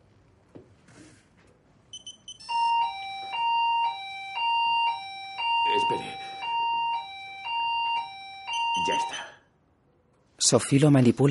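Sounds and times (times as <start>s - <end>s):
shop alarm panel beeping at night: 1.9s - 9.4s
speech: 8.9s - 9.2s, 10.5s - 11.2s.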